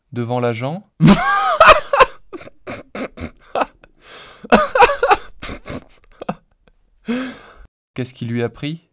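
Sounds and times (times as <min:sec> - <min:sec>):
basic synthesized laughter: 0:01.0 - 0:06.5.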